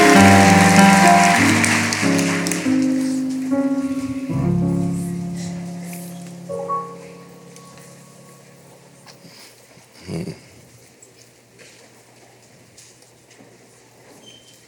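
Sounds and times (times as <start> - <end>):
audience clapping hands in praise: 0.0 - 3.7.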